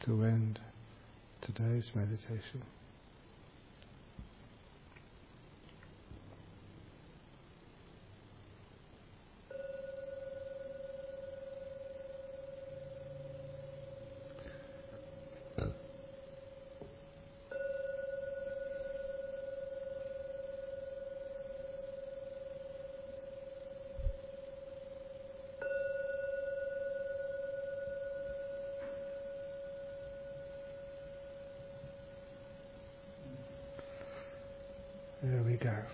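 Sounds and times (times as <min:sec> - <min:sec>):
speech: 0:00.0 - 0:00.8, 0:01.4 - 0:02.8
gong ringing: 0:09.5 - 0:35.9.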